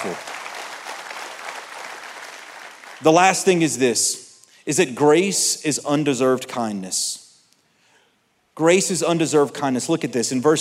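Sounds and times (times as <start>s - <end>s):
speech: 0.0s - 0.3s, 3.0s - 7.2s, 8.6s - 10.5s
audience clapping: 0.0s - 3.6s.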